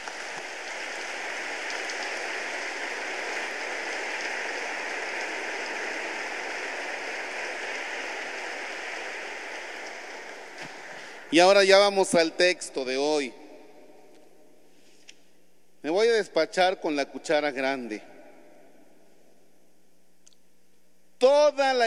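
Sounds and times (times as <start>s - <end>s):
audience applauding: 0.0s - 11.4s
speech: 11.3s - 13.4s, 15.9s - 18.1s.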